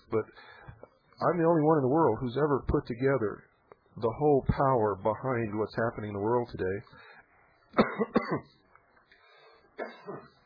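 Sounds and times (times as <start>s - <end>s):
speech: 0.1s - 0.6s, 1.2s - 7.1s, 7.7s - 8.6s, 9.8s - 10.4s
person coughing after something went down the wrong pipe: 7.8s - 8.6s, 9.8s - 10.4s.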